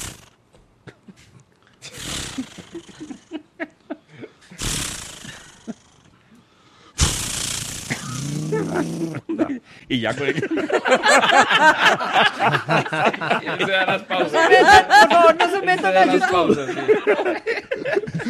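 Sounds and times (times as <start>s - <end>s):
vocal imitation of a chainsaw being started: 0.0s - 0.3s, 1.9s - 3.2s, 4.6s - 6.1s, 7.0s - 9.3s
laughter: 2.3s - 4.6s, 8.4s - 18.2s
speech: 8.7s - 17.9s.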